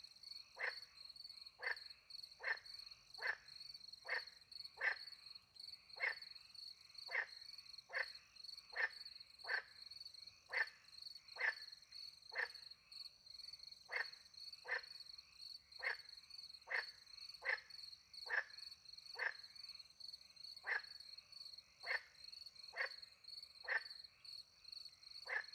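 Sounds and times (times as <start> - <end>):
frog croaking: 0.5 - 1.0, 1.6 - 5.1, 6.0 - 6.4, 7.0 - 9.8, 10.4 - 12.7, 13.8 - 15.0, 15.7 - 19.6, 20.6 - 21.0, 21.6 - 24.2, 25.2 - 25.5.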